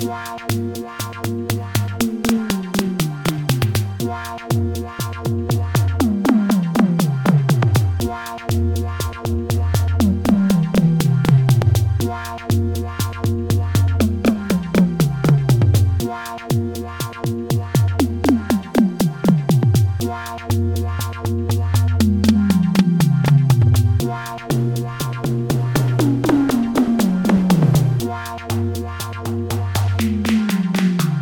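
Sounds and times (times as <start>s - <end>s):
acoustic toms: 1.2s - 31.2s.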